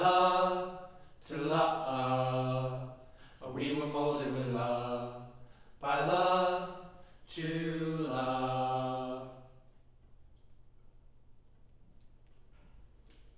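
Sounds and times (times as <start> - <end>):
choir singing low mid harmony: 0.0 - 9.6.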